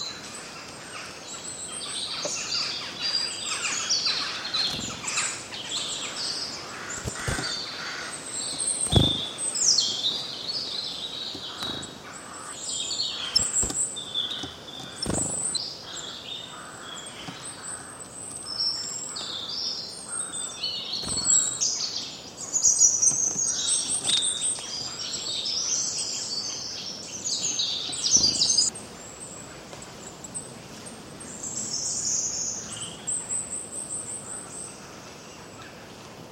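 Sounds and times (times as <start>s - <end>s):
birds chirping: 0.0s - 35.6s.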